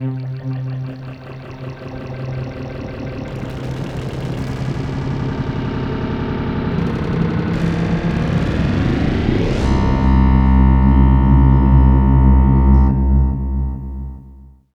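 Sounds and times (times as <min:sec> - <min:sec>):
twisted atmospheric special effects: 0:00.0 - 0:13.9.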